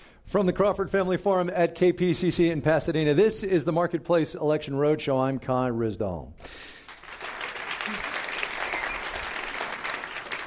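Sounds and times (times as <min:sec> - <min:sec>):
speech: 0:00.3 - 0:06.7
audience applause: 0:06.8 - 0:10.4.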